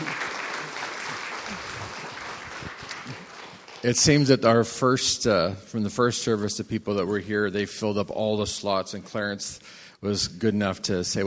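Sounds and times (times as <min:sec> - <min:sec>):
audience applause: 0:00.0 - 0:04.0
speech: 0:03.8 - 0:11.2.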